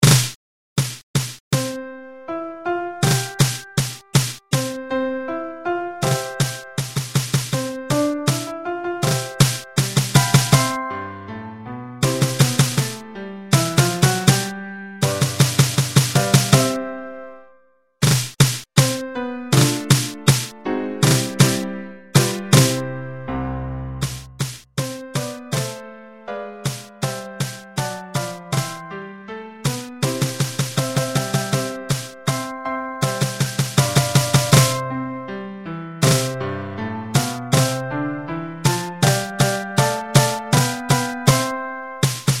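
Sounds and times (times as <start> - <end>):
drum: 0.0 - 1.8, 3.0 - 4.8, 6.0 - 10.8, 12.0 - 13.0, 13.6 - 14.4, 15.0 - 16.7, 18.0 - 19.0, 19.6 - 21.6, 22.2 - 22.8, 24.0 - 25.8, 26.6 - 28.8, 29.8 - 34.8, 36.0 - 36.4, 37.2 - 37.8, 39.0 - 41.4, 42.0 - 42.3
piano: 1.5 - 17.8, 18.8 - 42.3.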